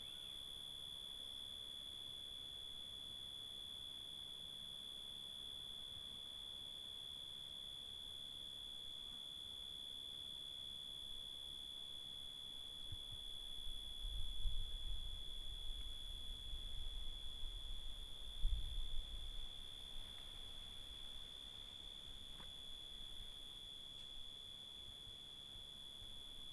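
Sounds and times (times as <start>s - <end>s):
crickets giving a steady high-pitched tone in Hato Corozal, Casanare, Colombia: 0.0s - 26.5s.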